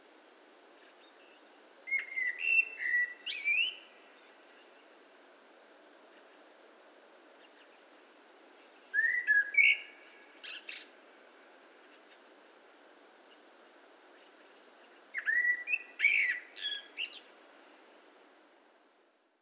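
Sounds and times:
Eurasian blackbird singing: 1.9 - 3.9, 8.9 - 10.9, 15.2 - 17.3.

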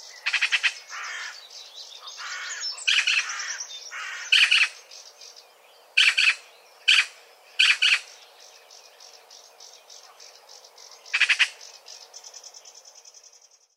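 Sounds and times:
Pica pica: 2.2 - 4.7, 6.0 - 8.0, 11.1 - 11.6.

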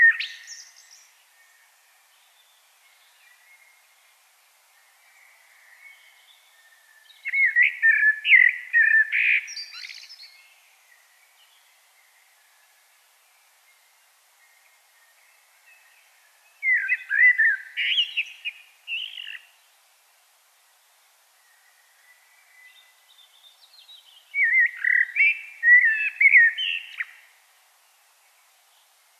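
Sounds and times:
common blackbird singing: 0.0 - 1.1, 5.2 - 10.6, 15.0 - 19.6, 21.5 - 27.3.

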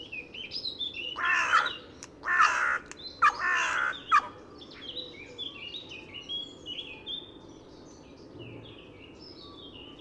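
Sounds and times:
carrion crow hoarse grating caws: 1.2 - 4.3.

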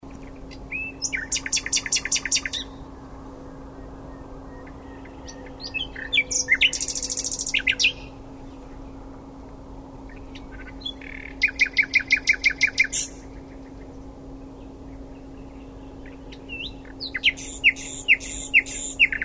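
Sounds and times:
faint hum: 0.0 - 19.2
common nightingale singing: 0.1 - 2.8, 3.8 - 8.7, 10.1 - 19.2.

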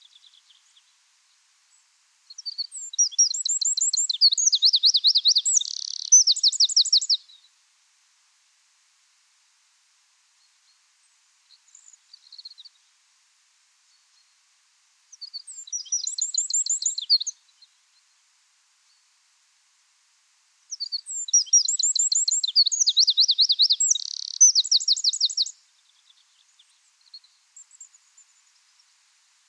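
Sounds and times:
Eurasian wren trilling song: 2.4 - 7.2, 15.2 - 17.3, 20.7 - 26.4.

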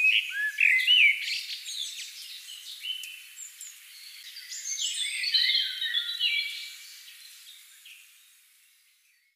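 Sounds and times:
Common blackbird Turdus merula uttering scratchy twittering high notes and rising whistles: 0.0 - 7.3.

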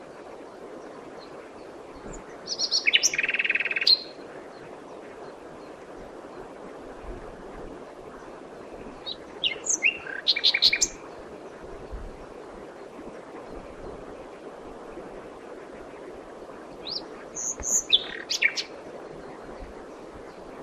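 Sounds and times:
common nightingale singing: 0.1 - 6.5, 8.1 - 15.1, 15.7 - 20.6.

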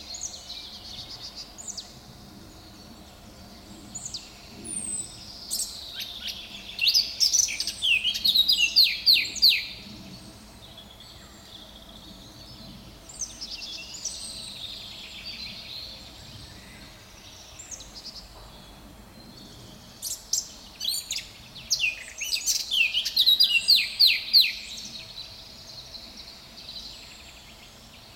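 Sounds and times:
Eurasian blackcap Sylvia atricapilla warbling song: 4.0 - 9.8, 20.0 - 24.9.

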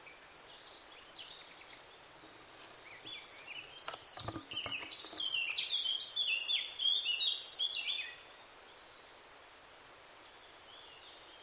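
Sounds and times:
Eurasian blackcap singing: 0.0 - 8.2.

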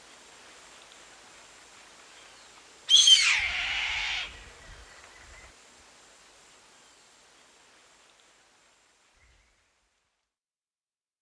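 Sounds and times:
bird rasping screech: 2.9 - 4.4.

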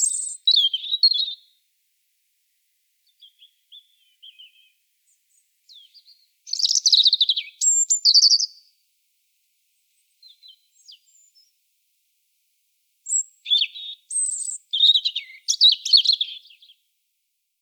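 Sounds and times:
European robin song: 0.0 - 1.6, 3.0 - 8.7, 9.9 - 11.6, 13.0 - 16.9.

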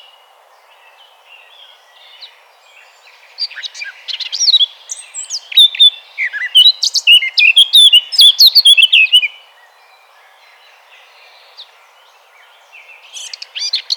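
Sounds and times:
Eurasian blackcap Sylvia atricapilla singing: 3.0 - 9.4, 12.8 - 13.9.

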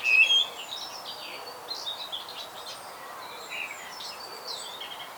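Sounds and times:
Eurasian blackbird singing: 0.0 - 0.5.

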